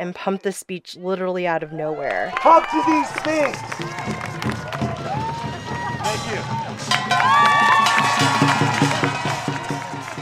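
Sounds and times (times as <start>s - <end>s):
speech: 0.0s - 4.5s, 6.1s - 8.5s
large crowd cheering and whooping: 1.6s - 10.2s
scattered clapping: 2.3s - 5.3s, 6.9s - 10.2s.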